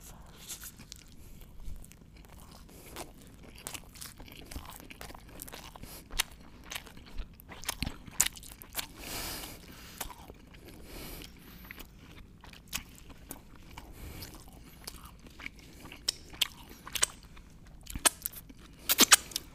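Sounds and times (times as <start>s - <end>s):
person chewing and crunching on fries: 0.0s - 19.5s.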